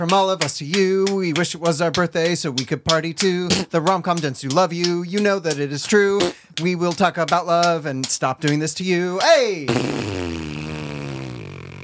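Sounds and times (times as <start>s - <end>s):
speech: 0.0s - 10.4s
voice imitating a fart with a blown raspberry: 9.6s - 11.8s.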